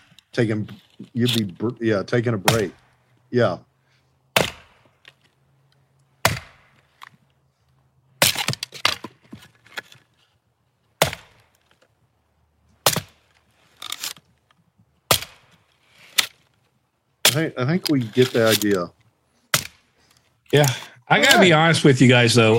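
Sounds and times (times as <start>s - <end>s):
speech: 0.4s - 3.7s, 17.4s - 19.0s, 20.5s - 22.5s
axe striking and splitting wood: 2.4s - 2.9s, 4.3s - 5.2s, 6.2s - 6.9s, 8.2s - 9.3s, 11.0s - 11.6s, 12.8s - 13.3s, 15.0s - 15.6s, 17.2s - 17.5s, 19.5s - 19.9s
wood splintering cracks: 2.4s - 2.9s, 4.3s - 5.3s, 6.1s - 7.2s, 8.2s - 10.2s, 10.9s - 11.8s, 12.7s - 16.6s, 17.2s - 18.9s, 19.5s - 21.5s.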